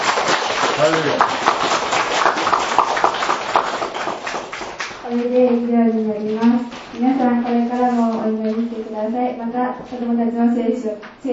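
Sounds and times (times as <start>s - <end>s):
audience applause: 0.0s - 5.1s
speech: 0.8s - 1.7s, 5.1s - 11.3s.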